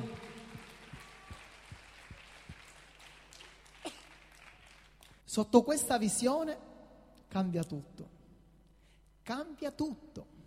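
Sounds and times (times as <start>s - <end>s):
audience applauding: 0.0s - 5.2s
speech: 5.3s - 6.7s, 7.3s - 8.2s, 9.3s - 10.3s.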